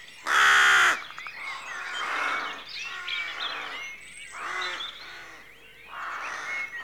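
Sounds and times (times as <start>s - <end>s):
rooks cawing in a rookery at dawn: 0.2s - 6.7s.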